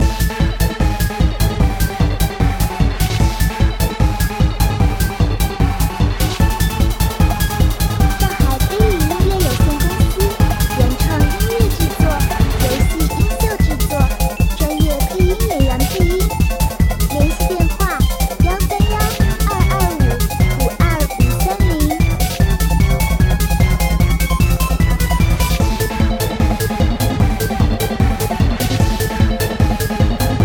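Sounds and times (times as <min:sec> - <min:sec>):
tense intense cute electronic battle music: 0:00.0 - 0:30.4.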